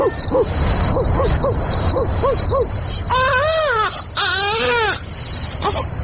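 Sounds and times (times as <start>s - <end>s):
speech: 0.2s - 3.5s
baby crying in a drama scene: 3.1s - 6.0s.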